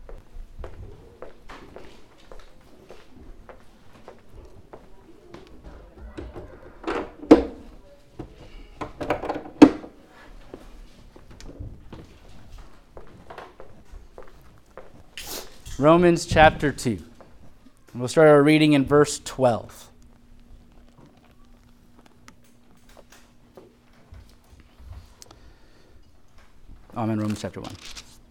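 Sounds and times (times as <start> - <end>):
footsteps: 0.0 - 28.2
faint murmur: 0.1 - 15.8, 16.9 - 19.0, 19.7 - 27.0
doors swinging shut: 5.6 - 7.8, 8.8 - 10.0
speech: 15.8 - 17.1, 18.0 - 19.9, 27.4 - 28.0.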